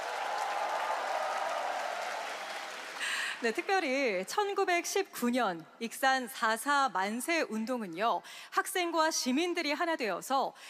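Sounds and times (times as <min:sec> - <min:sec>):
audience applause: 0:00.0 - 0:03.8
speech: 0:03.4 - 0:10.6.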